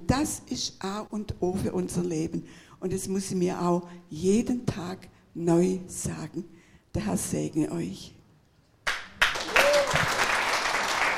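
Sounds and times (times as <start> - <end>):
speech: 0.1 - 8.2
applause: 8.8 - 11.1.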